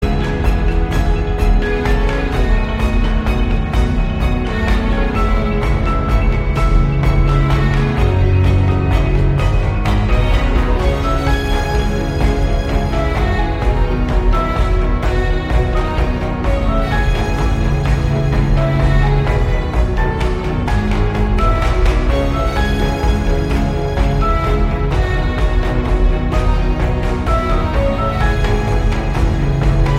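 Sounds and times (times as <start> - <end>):
orchestral music: 0.0 - 29.9.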